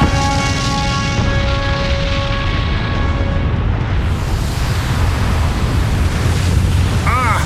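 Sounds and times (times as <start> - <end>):
sustained humming tone: 0.0 - 4.2
avalanche set off by a detonation rumbling: 0.0 - 7.4.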